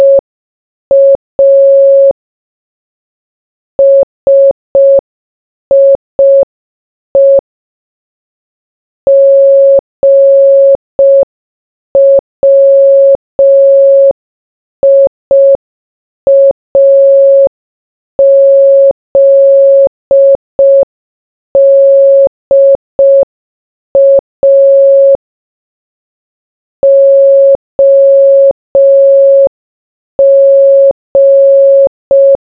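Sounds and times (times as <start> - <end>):
morse code beeps: 0.0 - 0.2, 0.9 - 2.2, 3.8 - 5.0, 5.7 - 6.5, 7.2 - 7.4, 9.1 - 11.3, 12.0 - 14.2, 14.8 - 15.6, 16.3 - 17.5, 18.2 - 20.9, 21.6 - 23.3, 24.0 - 25.2, 26.8 - 29.5, 30.2 - 32.4.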